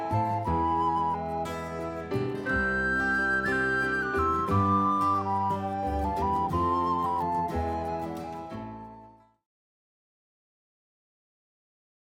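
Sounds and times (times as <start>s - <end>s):
music piece in binary form: 0.0s - 9.4s.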